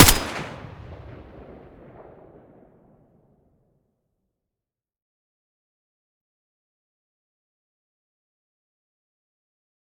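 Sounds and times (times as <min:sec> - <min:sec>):
M4A1 rifle gunshot: 0:00.0 - 0:02.1.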